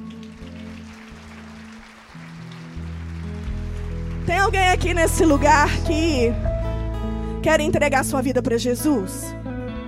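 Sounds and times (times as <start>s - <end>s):
audience applauding: 0.0s - 5.8s
speech: 4.4s - 6.5s, 7.4s - 9.4s.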